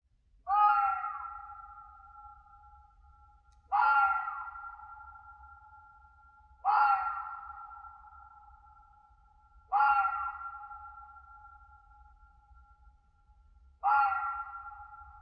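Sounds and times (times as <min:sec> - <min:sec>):
red fox screaming in winter in a European mountain forest: 0:00.5 - 0:01.9, 0:03.7 - 0:04.9, 0:06.6 - 0:07.9, 0:09.7 - 0:10.8, 0:13.8 - 0:15.0.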